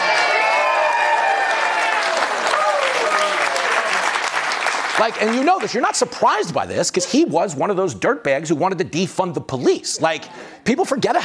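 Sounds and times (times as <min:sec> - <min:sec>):
crowd booing: 0:00.0 - 0:04.3
speech: 0:05.0 - 0:11.2.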